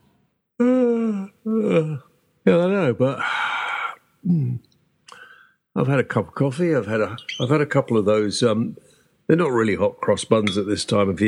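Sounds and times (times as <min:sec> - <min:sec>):
person yawning: 0:00.6 - 0:02.1, 0:03.2 - 0:04.6
speech: 0:01.6 - 0:03.4, 0:05.8 - 0:11.2.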